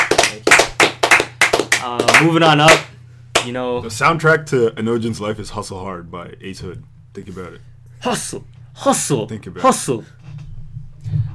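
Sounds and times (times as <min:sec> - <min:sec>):
hand clapping: 0:00.0 - 0:03.6
speech: 0:01.8 - 0:10.2.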